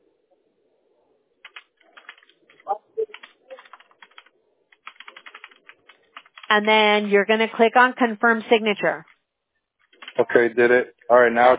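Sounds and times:
typing a name on a computer keyboard: 0:01.4 - 0:06.9, 0:09.8 - 0:10.3
speech: 0:06.5 - 0:09.1, 0:10.2 - 0:11.5.

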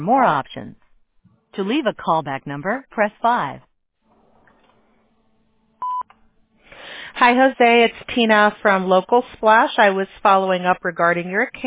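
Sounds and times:
speech: 0:00.0 - 0:00.8, 0:01.6 - 0:03.7, 0:07.2 - 0:11.6
voicemail recording tone: 0:05.8 - 0:06.1.

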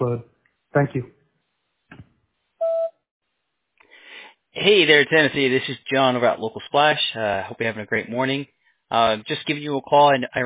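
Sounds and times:
speech: 0:00.0 - 0:01.2, 0:04.6 - 0:10.4
answering machine beep: 0:02.6 - 0:02.9.

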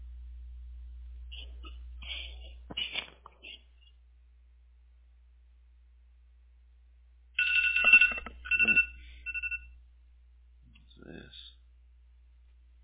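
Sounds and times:
steady low hum: 0:00.0 - 0:12.8
phone alarm with high electronic chirping tones: 0:07.4 - 0:09.8.

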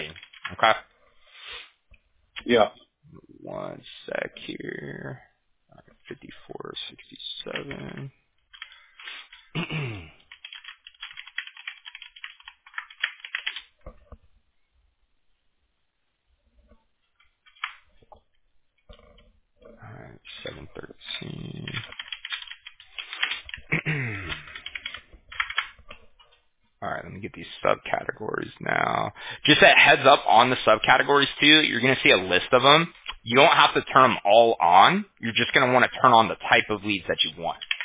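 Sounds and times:
computer keyboard typing while copying and pasting text: 0:00.0 - 0:00.6, 0:07.5 - 0:09.5, 0:10.2 - 0:13.8, 0:17.4 - 0:17.8, 0:21.2 - 0:25.8, 0:37.5 - 0:37.8
speech: 0:00.6 - 0:00.9, 0:02.4 - 0:05.3, 0:06.1 - 0:08.2, 0:27.1 - 0:37.7.

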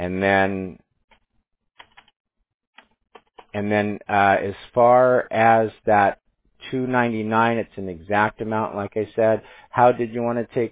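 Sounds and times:
speech: 0:00.0 - 0:00.8, 0:03.6 - 0:10.7
computer keyboard typing: 0:01.8 - 0:02.1, 0:02.8 - 0:03.6.

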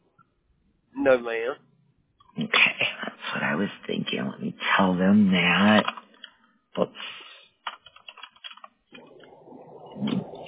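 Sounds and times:
speech: 0:01.0 - 0:01.7, 0:03.3 - 0:06.0, 0:06.8 - 0:07.2
typing on a computer keyboard: 0:07.6 - 0:08.8.

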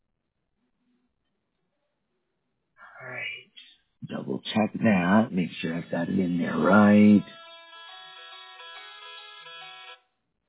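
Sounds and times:
speech: 0:04.0 - 0:07.4
phone ringtone: 0:06.6 - 0:10.1.

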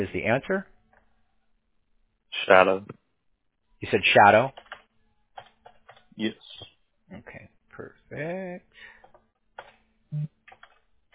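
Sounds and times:
speech: 0:00.0 - 0:00.8, 0:02.4 - 0:03.0, 0:03.8 - 0:04.6, 0:06.2 - 0:06.4, 0:07.1 - 0:08.7, 0:10.1 - 0:10.4
typing on a computer keyboard while entering a security answer: 0:04.5 - 0:06.1, 0:09.0 - 0:09.8, 0:10.4 - 0:11.1.

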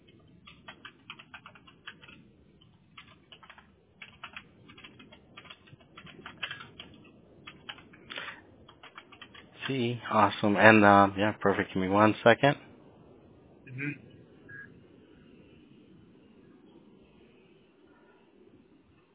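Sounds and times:
typing on a computer keyboard: 0:00.0 - 0:09.8
speech: 0:09.7 - 0:12.7, 0:13.8 - 0:14.0.

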